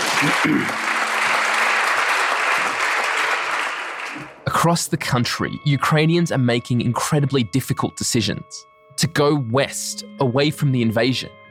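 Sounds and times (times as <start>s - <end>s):
applause from parliament members: 0.0s - 4.4s
speech: 0.2s - 0.9s, 4.6s - 11.4s.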